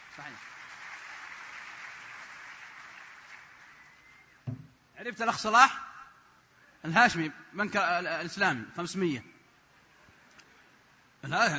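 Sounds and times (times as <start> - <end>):
crowd applause for a contestant at a quiz event: 0.0 - 4.3
speech: 0.2 - 0.6, 5.0 - 5.9, 6.8 - 9.3, 11.2 - 11.5.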